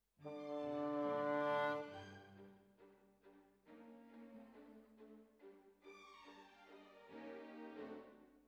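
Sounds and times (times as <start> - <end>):
bassoon: 0.2 - 2.2.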